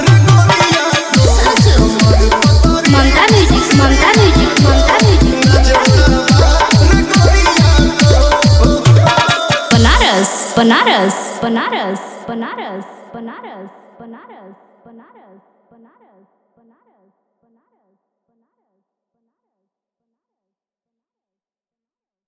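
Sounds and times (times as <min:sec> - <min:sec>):
Bhojpuri DJ remix song: 0:00.0 - 0:13.5.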